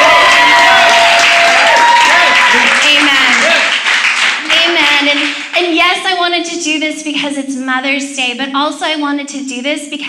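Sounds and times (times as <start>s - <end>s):
audience applause: 0.0s - 5.6s
speech: 6.7s - 10.0s.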